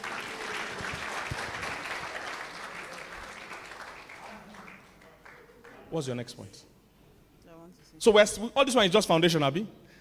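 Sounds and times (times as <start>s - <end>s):
audience clapping: 0.0s - 5.9s
speech: 5.9s - 6.7s, 8.0s - 9.8s.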